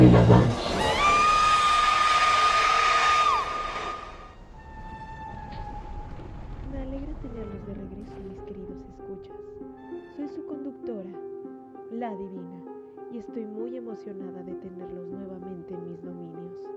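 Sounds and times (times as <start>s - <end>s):
fainter wavering cries: 0.0s - 4.4s
banshee scream: 0.0s - 5.4s
rushing roar: 0.0s - 6.7s.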